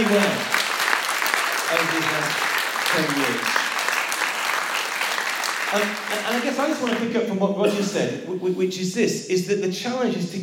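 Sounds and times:
speech: 0:00.0 - 0:00.5, 0:01.7 - 0:03.6, 0:05.7 - 0:10.4
audience clapping: 0:00.0 - 0:07.2.

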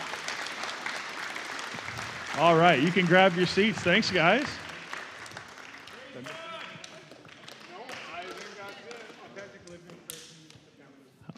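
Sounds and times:
audience applause: 0:00.0 - 0:09.2
speech: 0:02.4 - 0:04.6.

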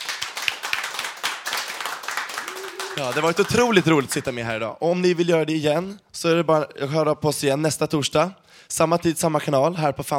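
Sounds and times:
group of people applauding: 0:00.0 - 0:04.5
speech: 0:03.0 - 0:10.1.

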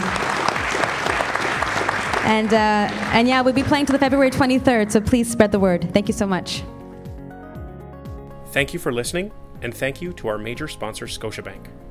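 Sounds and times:
crowd clapping: 0:00.0 - 0:05.0
speech: 0:02.3 - 0:06.8, 0:08.5 - 0:11.8.

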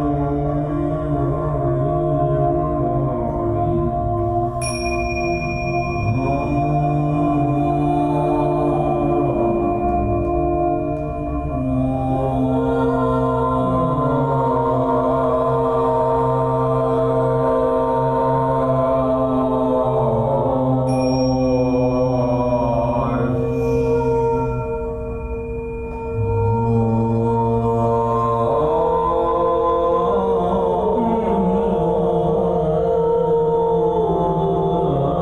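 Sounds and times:
voices humming and singing in long sliding tones: 0:00.0 - 0:35.1
crystal singing bowl struck and ringing: 0:04.6 - 0:07.4, 0:20.9 - 0:27.3.

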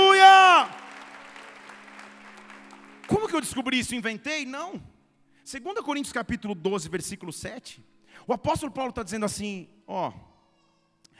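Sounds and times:
audience applause: 0:00.0 - 0:04.0
speech: 0:03.4 - 0:04.9, 0:05.5 - 0:10.3.

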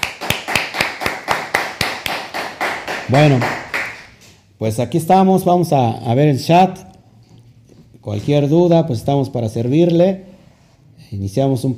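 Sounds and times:
applause: 0:00.0 - 0:04.2
speech: 0:03.1 - 0:03.6, 0:04.6 - 0:06.9, 0:08.0 - 0:10.3, 0:11.1 - 0:11.7.

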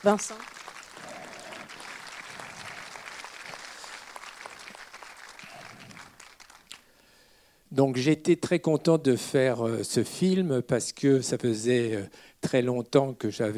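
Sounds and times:
speech: 0:00.0 - 0:00.6, 0:07.8 - 0:13.5
audience applause: 0:00.0 - 0:06.9.

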